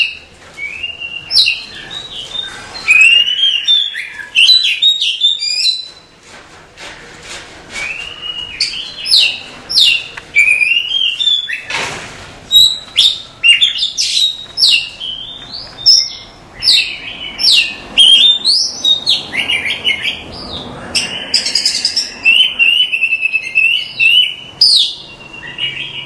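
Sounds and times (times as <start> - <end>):
Oriental magpie-robin singing: 0.0 - 6.1, 7.8 - 11.7, 12.5 - 26.0.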